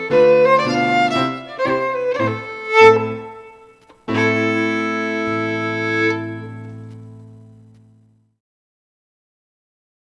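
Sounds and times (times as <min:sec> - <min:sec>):
Scottish fiddle playing a reel: 0:00.0 - 0:07.0.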